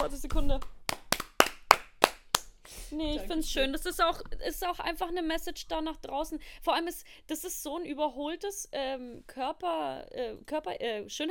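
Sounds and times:
hands clapping: 0:00.0 - 0:02.6
speech: 0:00.1 - 0:00.8, 0:02.9 - 0:11.2.

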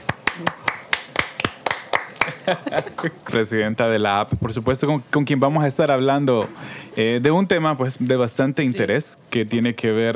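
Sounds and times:
applause: 0:00.0 - 0:03.2
speech: 0:00.4 - 0:00.8, 0:02.4 - 0:10.1
laughter: 0:02.2 - 0:03.4.

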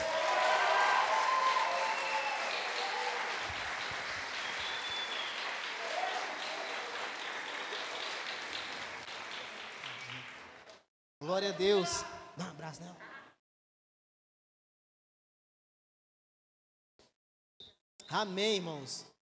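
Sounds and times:
audience clapping hands: 0:00.0 - 0:10.9
speech: 0:11.4 - 0:13.1, 0:18.1 - 0:19.1.

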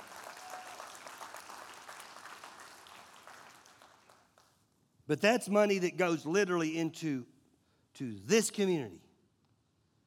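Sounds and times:
audience applause: 0:00.0 - 0:04.5
speech: 0:05.1 - 0:07.3, 0:08.0 - 0:09.0.

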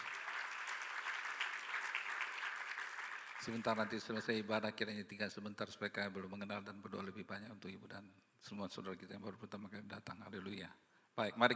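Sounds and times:
audience applause: 0:00.0 - 0:04.2
speech: 0:03.4 - 0:11.5.

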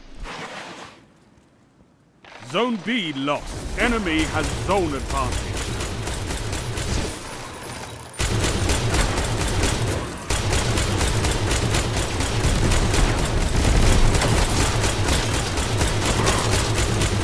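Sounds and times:
speech: 0:02.5 - 0:05.7
rapid automatic video game gunfire from a modded controller: 0:03.4 - 0:17.2.

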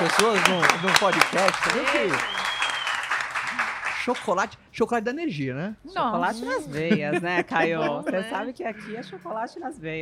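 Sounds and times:
audience applause: 0:00.0 - 0:04.4
speech: 0:00.1 - 0:02.4, 0:04.0 - 0:09.9
laughter: 0:06.5 - 0:09.3.

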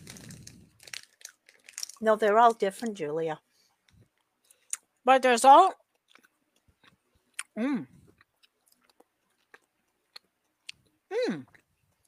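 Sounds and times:
raspberry-flavoured candy bitten and chewed: 0:00.0 - 0:02.9, 0:05.8 - 0:12.0
speech: 0:02.0 - 0:03.5, 0:05.0 - 0:05.8, 0:07.6 - 0:08.0, 0:11.2 - 0:11.5
person humming: 0:07.6 - 0:08.0, 0:11.1 - 0:11.5.

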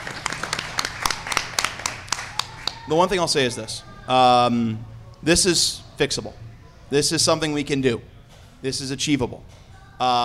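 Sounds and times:
light uneven hand clapping: 0:00.0 - 0:02.9
speech: 0:02.9 - 0:10.2.

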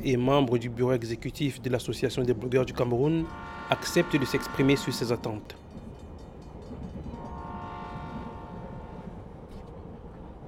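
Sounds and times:
speech: 0:00.0 - 0:05.7
train rumble at the railway station in Yaoundé, Cameroon: 0:00.0 - 0:10.4
train horn: 0:03.2 - 0:05.5, 0:07.0 - 0:09.4.

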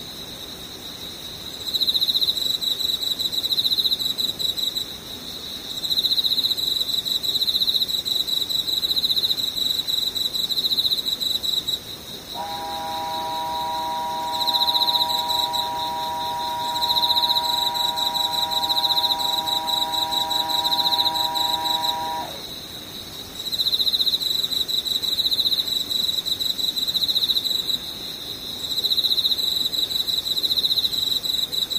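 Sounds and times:
insects trilling in a chorus: 0:01.1 - 0:31.7
steady mid-pitched humming tone: 0:12.4 - 0:22.4.

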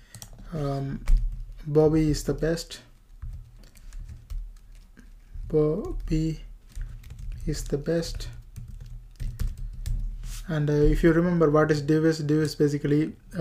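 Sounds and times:
typing on a computer keyboard during a web coding session: 0:00.0 - 0:10.2
speech: 0:00.5 - 0:02.9, 0:05.5 - 0:06.5, 0:07.4 - 0:08.4, 0:10.5 - 0:13.4.

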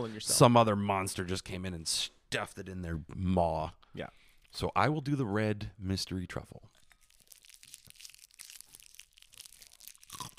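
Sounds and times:
speech: 0:00.0 - 0:06.8
ice crunching while being eaten: 0:06.8 - 0:10.3.

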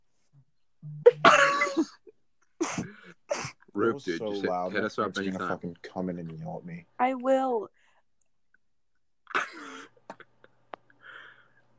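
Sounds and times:
person burping: 0:00.8 - 0:02.0
speech: 0:03.8 - 0:07.8.

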